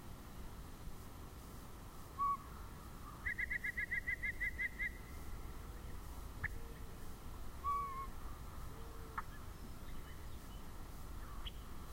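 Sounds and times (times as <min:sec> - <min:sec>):
yellow-breasted chat giving varied calls: 0:02.2 - 0:11.9.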